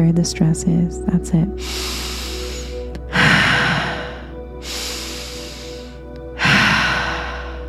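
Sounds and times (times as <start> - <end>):
speech: 0.0 - 2.2
deep breathing during a stress-relief breathwork exercise: 1.6 - 7.6.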